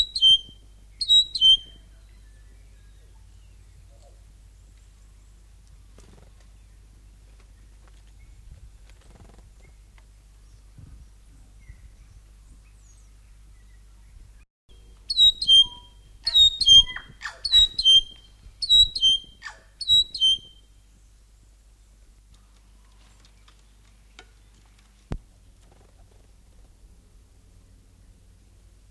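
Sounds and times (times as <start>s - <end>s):
North Island saddleback singing rich repeated chattering notes: 0.0s - 3.6s, 15.1s - 20.6s.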